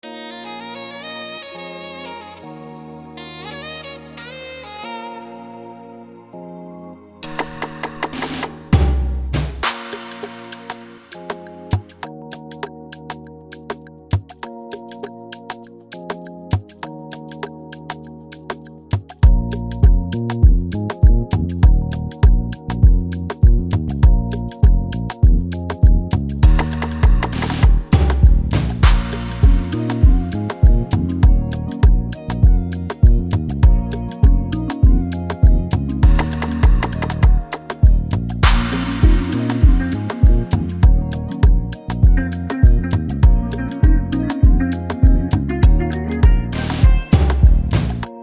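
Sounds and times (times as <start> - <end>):
afrobeat music: 0.0 - 48.2.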